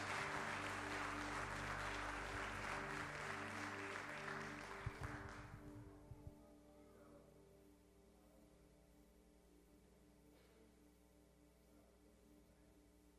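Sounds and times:
audience applause: 0:00.0 - 0:05.8.

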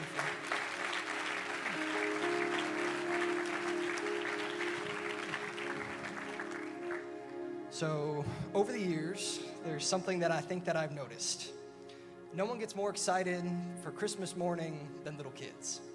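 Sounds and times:
applause: 0:00.0 - 0:07.3
speech: 0:07.8 - 0:11.6, 0:12.3 - 0:15.9.

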